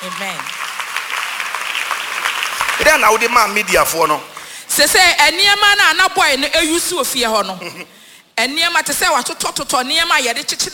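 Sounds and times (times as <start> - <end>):
congregation clapping at a church service: 0.0 - 4.7
speech: 0.1 - 0.7, 2.8 - 10.7.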